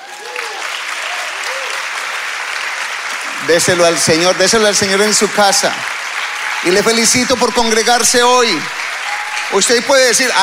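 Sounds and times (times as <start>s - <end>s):
audience applause: 0.0s - 10.4s
speech: 3.5s - 6.0s, 6.6s - 8.8s, 9.5s - 10.4s.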